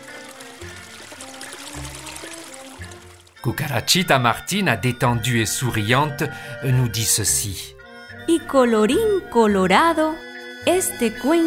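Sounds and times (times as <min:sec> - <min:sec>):
fountain water flowing: 0:00.0 - 0:03.4
speech: 0:03.4 - 0:11.4.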